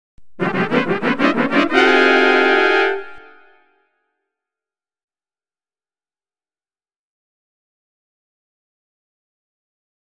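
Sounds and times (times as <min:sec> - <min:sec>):
fanfare: 0:00.4 - 0:03.8.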